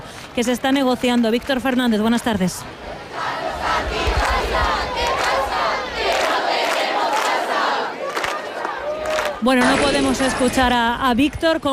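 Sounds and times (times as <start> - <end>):
speech: 0.4 - 3.0, 9.4 - 11.7
housing protest crowd shouting and chanting: 2.7 - 10.2.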